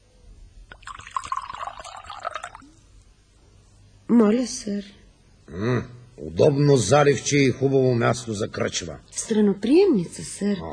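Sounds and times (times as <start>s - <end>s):
rum being poured into a glass: 0.7s - 2.8s
speech: 4.1s - 10.7s.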